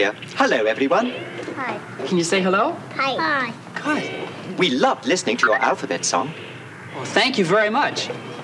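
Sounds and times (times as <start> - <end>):
speech: 0.0 - 8.3
robot droid beeping and whistling: 5.4 - 5.8.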